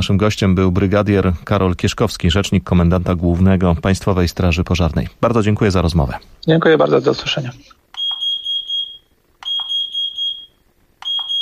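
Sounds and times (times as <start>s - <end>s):
speech: 0.0s - 7.8s
smoke and carbon monoxide detector test beep: 7.9s - 11.4s.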